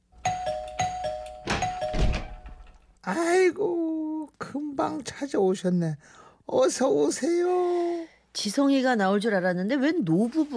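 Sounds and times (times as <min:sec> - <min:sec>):
apartment doorbell ringing: 0:00.2 - 0:02.8
speech: 0:03.1 - 0:10.5.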